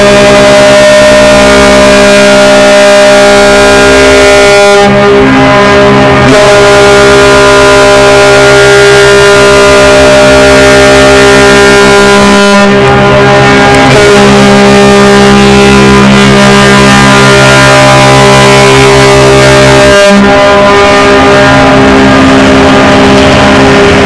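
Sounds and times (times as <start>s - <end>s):
siren: 0.2s - 24.0s.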